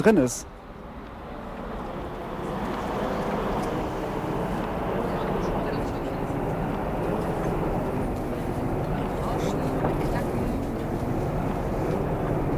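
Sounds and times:
tram recording played back slowed down: 0:00.0 - 0:12.5.

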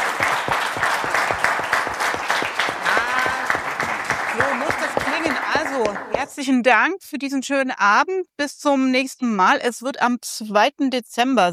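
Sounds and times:
audience applause: 0:00.0 - 0:06.4
speech: 0:05.8 - 0:11.5.

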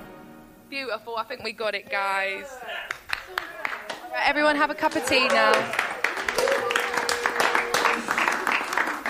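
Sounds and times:
speech: 0:00.7 - 0:03.5, 0:04.1 - 0:06.6
applause: 0:02.9 - 0:09.0.

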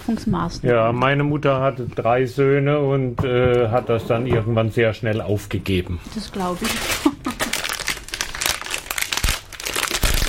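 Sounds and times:
speech: 0:00.1 - 0:07.1
rustling underpants crinkling: 0:06.4 - 0:10.2.

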